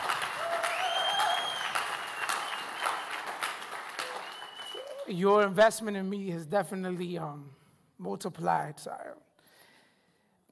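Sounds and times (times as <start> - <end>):
crowd applause: 0.0 - 5.1
cheers: 0.0 - 5.2
speech: 5.1 - 9.3.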